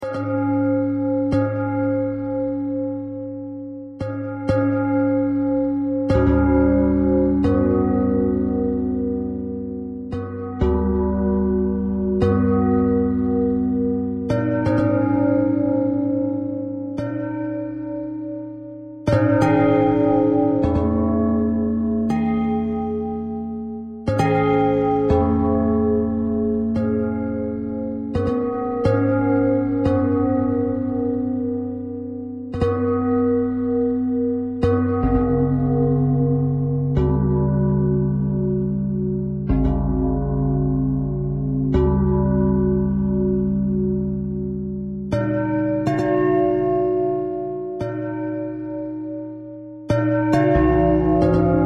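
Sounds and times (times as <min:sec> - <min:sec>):
bell: 0:00.0 - 0:51.6.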